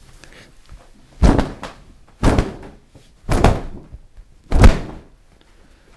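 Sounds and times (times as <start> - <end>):
dense woven Flemish linen fabric snapping: 1.2 - 5.1.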